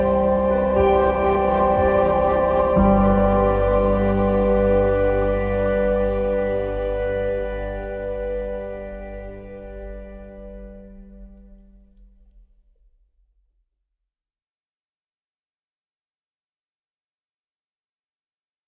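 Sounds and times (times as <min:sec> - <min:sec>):
beauty ambient music: 0:00.0 - 0:12.4.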